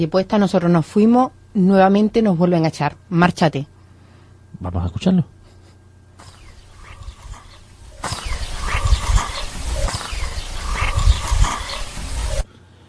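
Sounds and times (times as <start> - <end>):
speech: 0.0 - 3.7, 4.6 - 5.4
distant dogs barking: 6.2 - 12.5.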